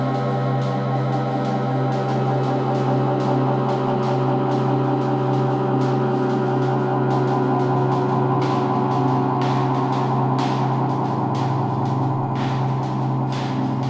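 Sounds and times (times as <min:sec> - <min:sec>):
noise drones: 0:00.0 - 0:13.8.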